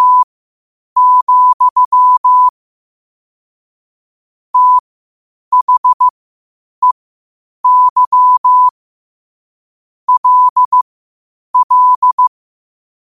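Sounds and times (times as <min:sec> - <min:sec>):
morse code at 5 wpm: 0:00.0 - 0:00.2, 0:01.0 - 0:02.5, 0:04.6 - 0:04.8, 0:05.5 - 0:06.1, 0:07.6 - 0:08.7, 0:10.1 - 0:10.8, 0:11.6 - 0:12.3.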